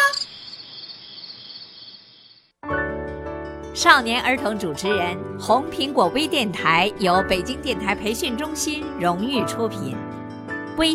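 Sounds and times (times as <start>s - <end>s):
katydid chirping: 0.0s - 2.5s
speech: 3.8s - 10.1s.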